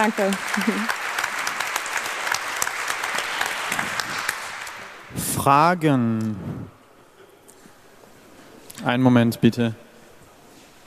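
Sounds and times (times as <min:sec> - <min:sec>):
speech: 0:00.0 - 0:01.0, 0:05.2 - 0:06.8, 0:08.8 - 0:09.8
audience applause: 0:00.0 - 0:05.2.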